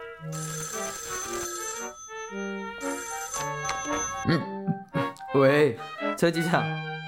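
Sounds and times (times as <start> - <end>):
telephone ringing: 0.0 - 4.2
speech: 0.2 - 2.9, 4.2 - 4.5, 5.4 - 6.9.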